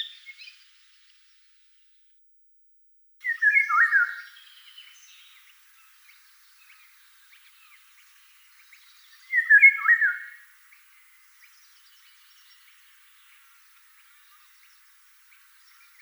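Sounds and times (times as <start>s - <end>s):
Eurasian golden oriole calling: 3.2s - 16.0s.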